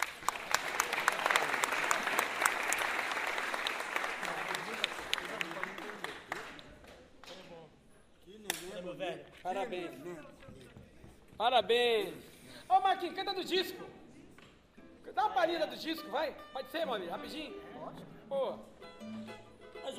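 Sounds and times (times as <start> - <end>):
audience applause: 0.0 - 7.0
speech: 9.6 - 10.4, 11.4 - 13.8, 15.2 - 18.7.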